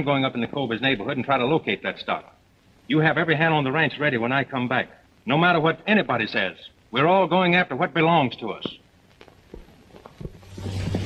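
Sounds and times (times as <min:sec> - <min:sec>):
speech: 0:00.0 - 0:08.8
horse hoofbeats: 0:09.5 - 0:11.0.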